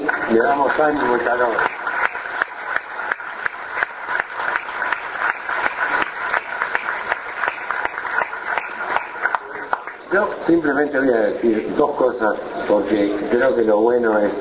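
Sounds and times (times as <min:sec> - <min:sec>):
audience applause: 0:00.0 - 0:10.4
speech: 0:00.3 - 0:01.7, 0:10.1 - 0:14.3.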